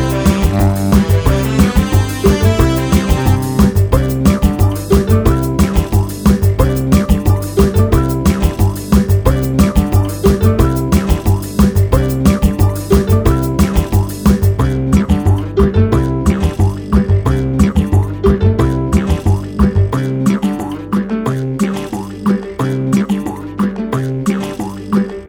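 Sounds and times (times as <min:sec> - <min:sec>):
chill music: 0:00.0 - 0:25.2.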